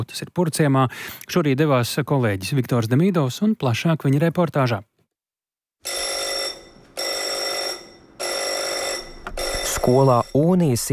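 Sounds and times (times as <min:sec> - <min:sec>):
speech: 0:00.0 - 0:04.9, 0:09.8 - 0:10.9
school alarm bell ringing: 0:05.8 - 0:10.9.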